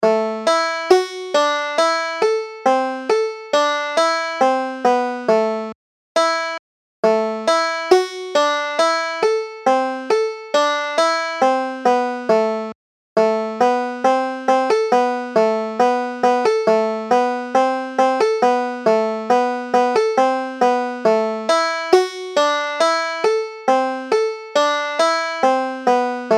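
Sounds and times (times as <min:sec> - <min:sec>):
banjo: 0:00.0 - 0:26.3.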